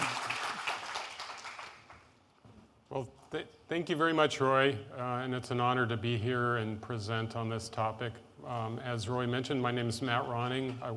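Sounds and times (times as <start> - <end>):
audience applause at a technical talk: 0.0 - 2.0
speech: 2.9 - 10.9.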